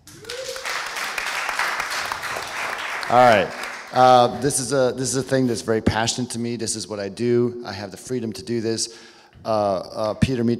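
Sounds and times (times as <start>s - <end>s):
rising whoop: 0.0s - 1.0s
audience clapping: 0.0s - 4.3s
speech: 3.1s - 10.5s.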